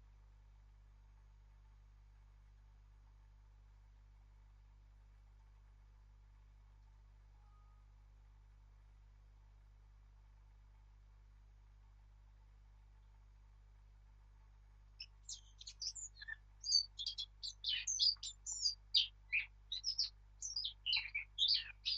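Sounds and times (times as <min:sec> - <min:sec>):
Eurasian blackcap Sylvia atricapilla warbling song: 0:15.0 - 0:21.9.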